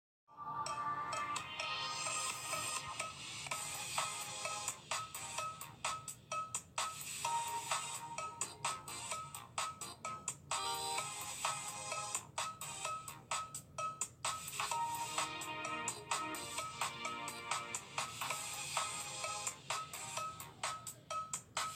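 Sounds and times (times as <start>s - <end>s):
bell: 0.6s - 21.7s.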